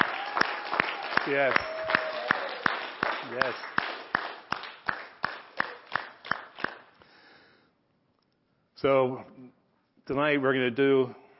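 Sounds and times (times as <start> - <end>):
audience clapping in unison: 0.0 - 7.0
speech: 1.3 - 1.7, 3.3 - 3.7, 8.8 - 9.4, 10.1 - 11.2.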